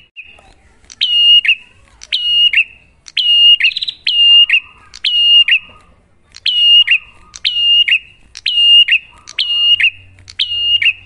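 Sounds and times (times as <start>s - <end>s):
prinia rattling whistled song: 0.0s - 11.0s.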